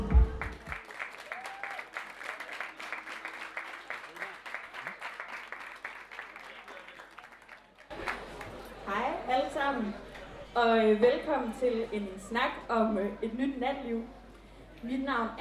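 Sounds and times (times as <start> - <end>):
live audience clapping: 0.3 - 9.3
speech: 10.8 - 14.2, 14.8 - 15.4.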